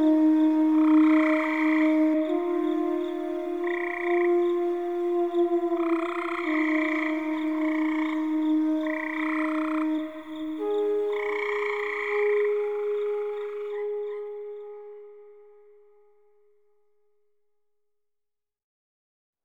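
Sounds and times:
loud frogs croaking: 0:00.1 - 0:14.5.

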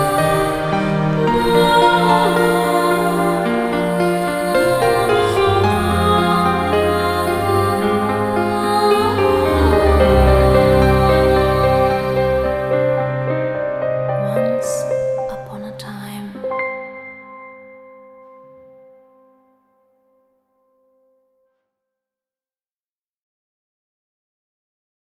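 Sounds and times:
fairy tale instrumental music: 0:00.0 - 0:19.6.

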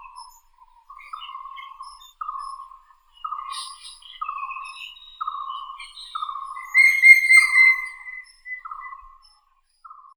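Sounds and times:
grey-headed woodpecker Picus canus calling: 0:03.3 - 0:08.8.

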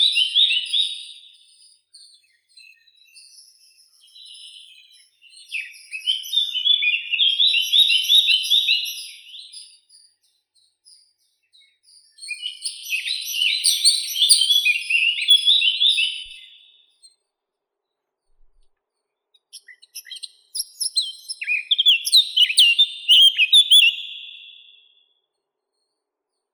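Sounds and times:
Sylvia atricapilla blackcap singing: 0:00.0 - 0:09.8, 0:11.8 - 0:16.7, 0:19.4 - 0:24.9.

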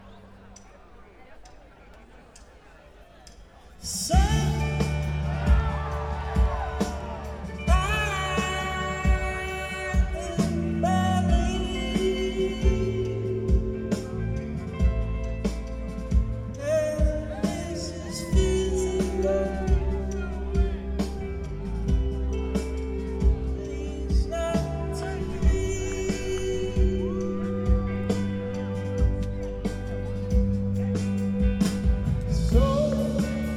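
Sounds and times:
drum solo: 0:04.1 - 0:33.5.

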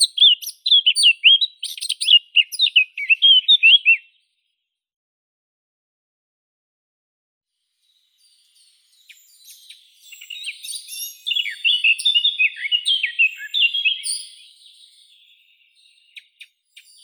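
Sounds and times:
Eurasian blackcap Sylvia atricapilla singing: 0:00.0 - 0:04.2, 0:08.2 - 0:17.0.

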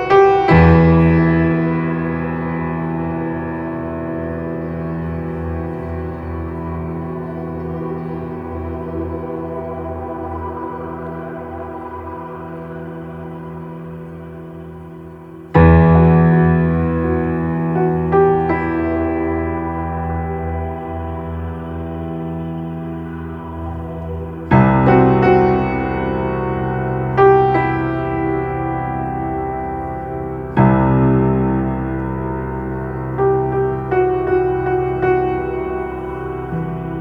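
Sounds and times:
ambience: 0:00.0 - 0:36.9
piano: 0:00.0 - 0:36.9.

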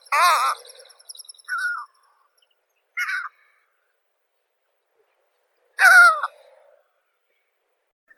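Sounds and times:
great skua Stercorarius skua calling: 0:00.0 - 0:00.9, 0:01.5 - 0:01.9, 0:05.8 - 0:06.4.

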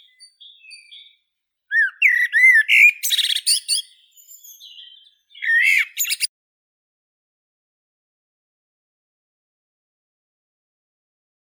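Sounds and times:
blackbird Turdus merula: 0:00.0 - 0:06.3.

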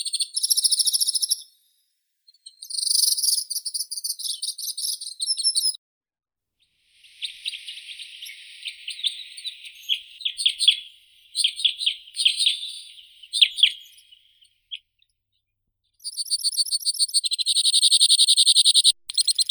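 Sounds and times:
white-winged crossbill Loxia leucoptera calling: 0:07.1 - 0:14.1, 0:16.1 - 0:19.4.

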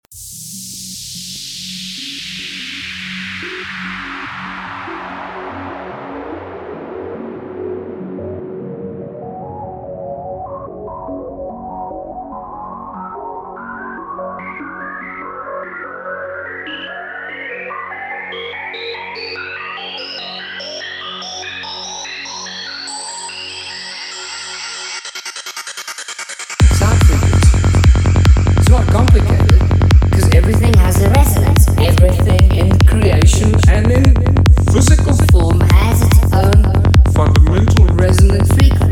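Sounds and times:
full-on psychedelic trance music: 0:00.1 - 0:38.8.

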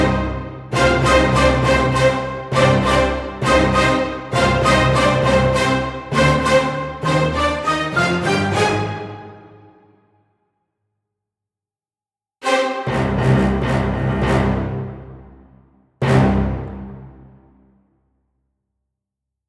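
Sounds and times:
orchestra staccato stem: 0:00.0 - 0:09.8, 0:12.4 - 0:17.6.

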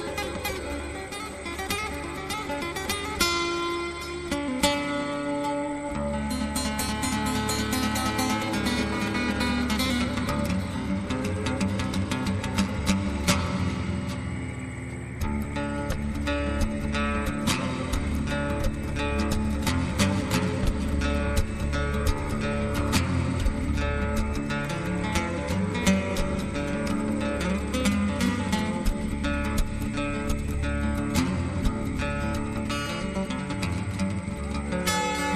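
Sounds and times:
acoustic music: 0:00.0 - 0:35.3.

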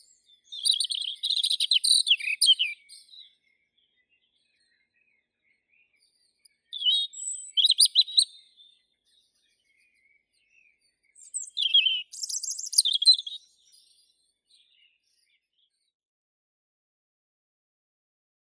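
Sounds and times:
European robin Erithacus rubecula singing: 0:00.0 - 0:15.7.

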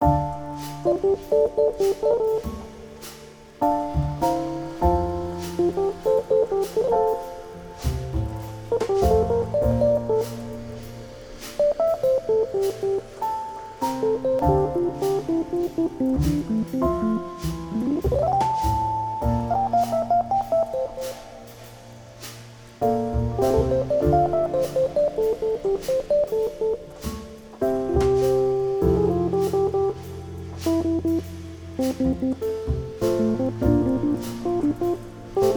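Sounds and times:
bossa nova music: 0:00.0 - 0:35.5.

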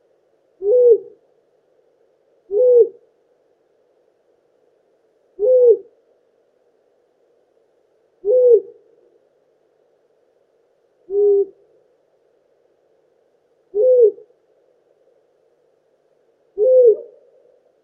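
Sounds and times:
long-eared owl Asio otus alarm call: 0:00.6 - 0:01.2, 0:02.5 - 0:03.0, 0:05.4 - 0:05.9, 0:08.2 - 0:08.8, 0:11.1 - 0:11.6, 0:13.7 - 0:14.3, 0:16.6 - 0:17.3.

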